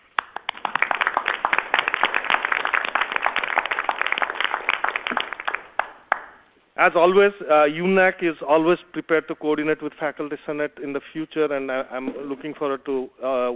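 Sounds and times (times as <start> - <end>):
audience applause: 0.0 - 6.3
speech: 6.8 - 13.5.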